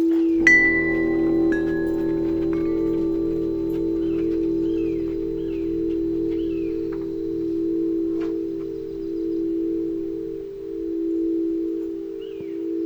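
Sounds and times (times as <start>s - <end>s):
deep forest ambient lounge music soundscape: 0.2s - 12.7s.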